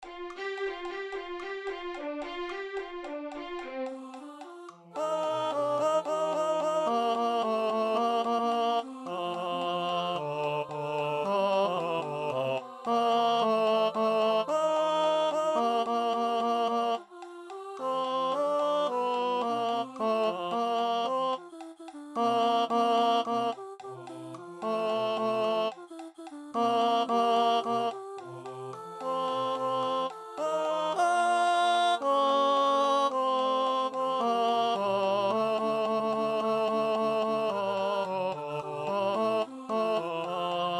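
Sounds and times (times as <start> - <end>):
tenor singing: 0.0 - 40.7.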